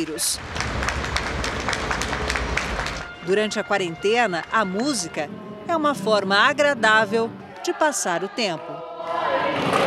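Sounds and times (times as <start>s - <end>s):
speech: 0.0s - 1.3s, 3.2s - 9.7s
residents applauding from windows for health workers: 0.0s - 3.2s.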